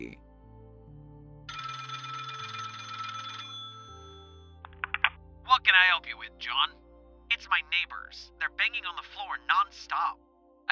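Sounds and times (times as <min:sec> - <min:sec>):
telephone ringing: 0:01.5 - 0:05.1
speech: 0:05.8 - 0:06.8, 0:07.4 - 0:10.7.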